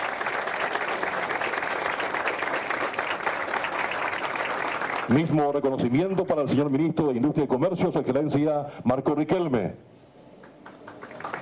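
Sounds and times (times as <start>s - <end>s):
audience applause: 0.0s - 5.4s, 10.5s - 11.3s
speech: 5.1s - 9.9s.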